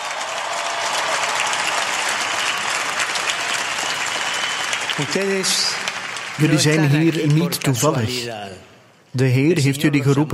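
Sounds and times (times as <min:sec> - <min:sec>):
loud applause: 0:00.0 - 0:08.0
speech: 0:05.0 - 0:10.3.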